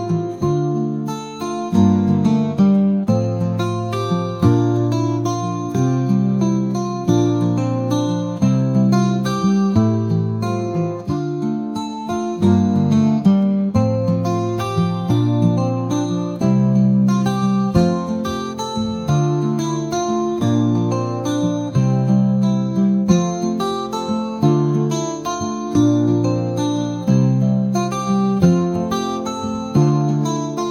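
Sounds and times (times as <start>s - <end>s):
beautiful music: 0.0s - 30.6s.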